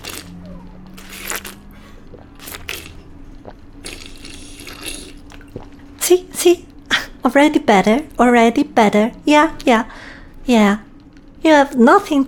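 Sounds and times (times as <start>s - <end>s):
wet slurping sips from a drink: 0.0s - 0.3s, 1.0s - 5.8s
steady low hum: 0.0s - 12.2s
speech: 6.1s - 10.8s, 11.4s - 12.2s.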